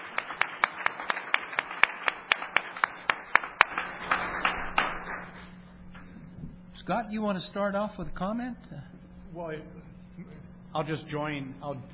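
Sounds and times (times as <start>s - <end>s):
audience applause: 0.0s - 5.5s
speech: 6.9s - 11.9s.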